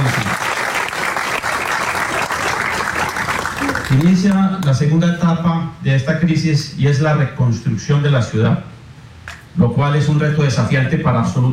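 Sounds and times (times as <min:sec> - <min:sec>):
audience applause: 0:00.0 - 0:04.4
speech: 0:03.9 - 0:08.7, 0:09.6 - 0:11.5.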